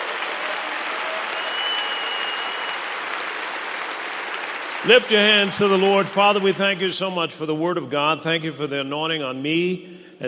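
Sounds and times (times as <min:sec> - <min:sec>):
crowd applauding: 0:00.0 - 0:07.2
speech: 0:04.8 - 0:10.2.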